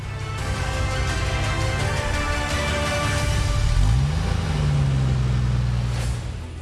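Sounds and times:
car engine revving: 0.4s - 6.6s.

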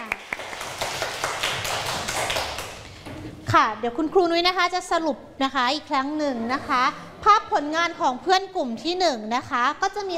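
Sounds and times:
class of students applauding: 0.0s - 2.9s
speech: 3.5s - 10.1s.

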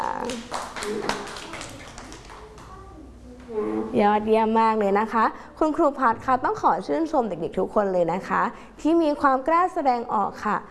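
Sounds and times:
children clapping: 0.1s - 2.8s
speech: 0.2s - 1.4s, 3.9s - 10.6s.

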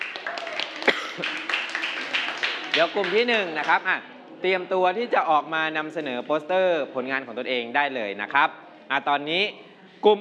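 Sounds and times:
group applause: 0.0s - 3.9s
speech: 1.2s - 1.4s, 2.8s - 10.1s.

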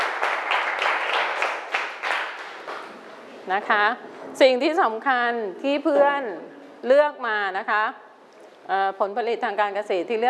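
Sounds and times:
classroom applause for a student group: 0.0s - 3.0s
speech: 3.5s - 8.0s, 8.7s - 10.2s.

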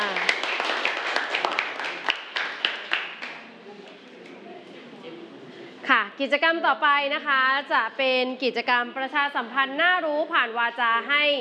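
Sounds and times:
applause: 0.0s - 3.5s
speech: 6.2s - 11.4s.

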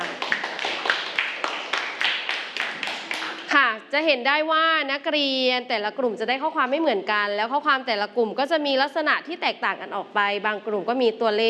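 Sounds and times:
students clapping: 0.0s - 3.6s
speech: 4.0s - 11.4s.

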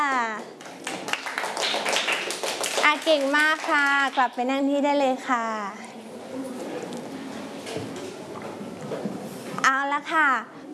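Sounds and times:
children clapping for a classmate: 0.1s - 4.4s
speech: 2.9s - 5.8s, 10.0s - 10.6s.

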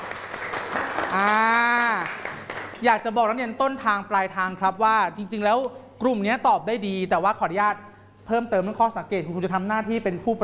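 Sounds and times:
audience applause: 0.0s - 2.8s
person shouting or cheering: 1.1s - 2.1s
speech: 1.2s - 1.5s, 2.8s - 10.4s.

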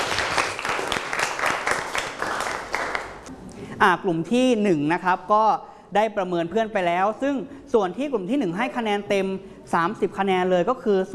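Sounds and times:
applause: 0.0s - 3.3s
speech: 3.8s - 11.1s.

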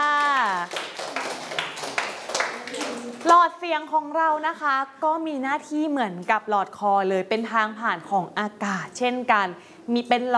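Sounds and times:
classroom clapping for a classmate: 0.0s - 3.4s
speech: 3.3s - 10.3s.

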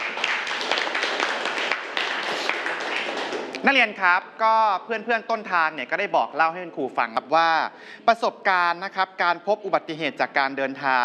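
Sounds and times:
students clapping for a classmate: 0.0s - 3.7s
speech: 3.6s - 11.0s.

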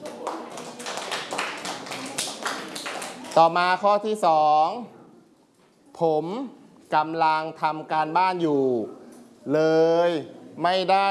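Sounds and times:
clapping: 0.0s - 3.4s
speech: 3.4s - 5.0s, 6.0s - 11.0s.

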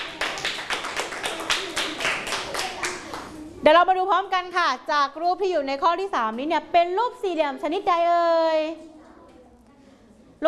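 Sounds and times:
classroom clapping: 0.0s - 3.4s
speech: 3.6s - 8.9s.

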